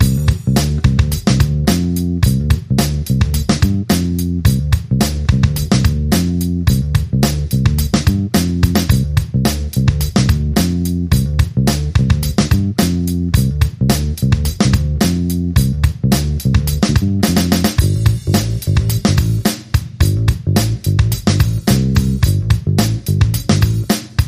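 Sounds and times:
bass guitar: 0:00.0 - 0:24.2
drums: 0:00.0 - 0:24.2.

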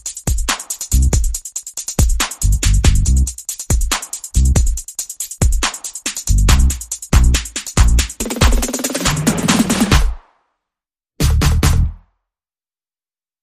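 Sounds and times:
percussion: 0:00.0 - 0:10.5, 0:11.2 - 0:12.0
bass: 0:00.9 - 0:01.3, 0:02.3 - 0:03.4, 0:04.4 - 0:04.7, 0:06.3 - 0:08.2, 0:09.0 - 0:10.0, 0:11.2 - 0:12.1.

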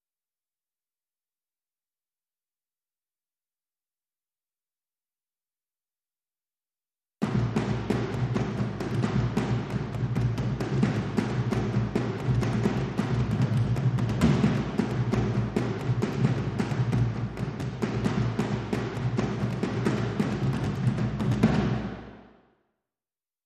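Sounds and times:
dhol drum loop: 0:07.2 - 0:22.1.

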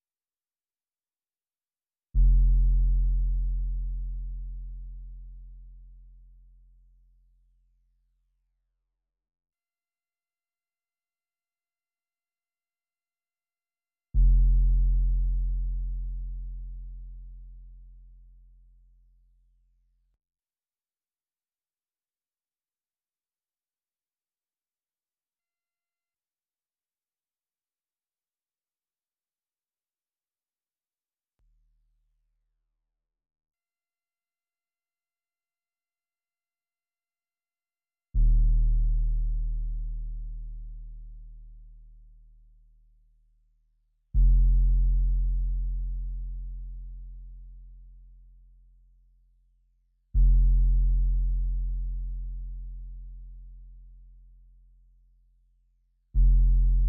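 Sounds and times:
bass: 0:02.1 - 0:08.6, 0:14.1 - 0:20.2, 0:38.1 - 0:56.8.

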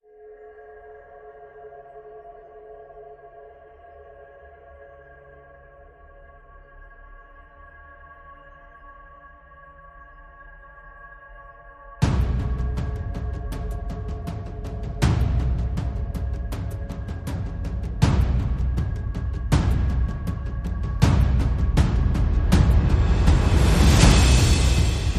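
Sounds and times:
drums: 0:12.0 - 0:25.1.

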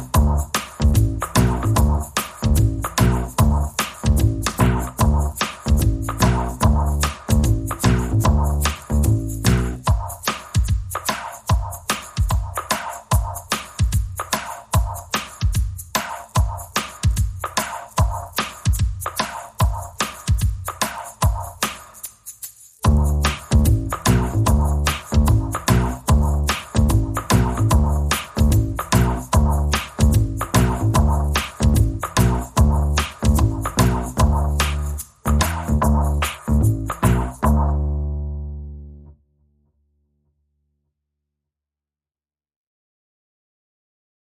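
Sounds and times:
bass: 0:00.0 - 0:10.1, 0:22.8 - 0:39.2
drums: 0:00.0 - 0:37.8.

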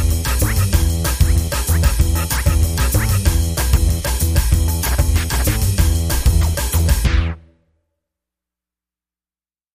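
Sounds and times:
record scratching rhythm: 0:00.0 - 0:07.4.

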